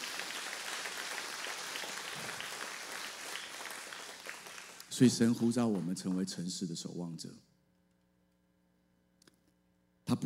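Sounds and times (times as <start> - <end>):
audience applause: 0.0 - 6.3
speech: 5.0 - 7.5.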